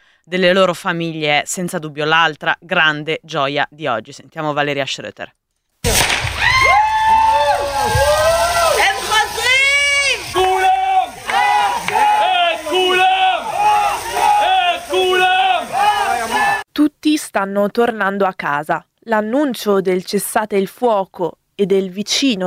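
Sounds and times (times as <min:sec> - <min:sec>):
speech: 0:00.2 - 0:05.4, 0:16.8 - 0:22.4
sharp pops: 0:05.8 - 0:06.6
crowd cheering, shouting and wailing in the street: 0:06.2 - 0:16.6.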